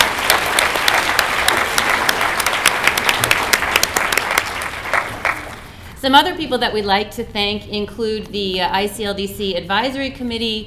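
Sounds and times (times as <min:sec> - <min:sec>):
round of applause: 0:00.0 - 0:05.8
speech: 0:06.0 - 0:10.6.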